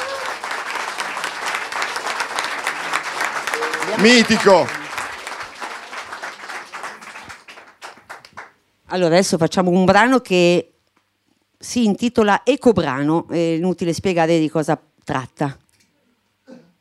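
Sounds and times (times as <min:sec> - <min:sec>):
audience applause: 0:00.0 - 0:08.6
speech: 0:04.0 - 0:04.8, 0:08.9 - 0:10.7, 0:11.6 - 0:15.6.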